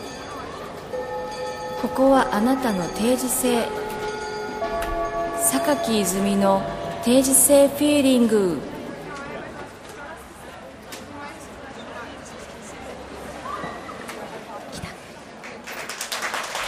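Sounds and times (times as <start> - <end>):
crowd chatter: 0.0 - 16.1
speech: 1.8 - 3.8, 5.5 - 8.7
audience applause: 15.4 - 16.6.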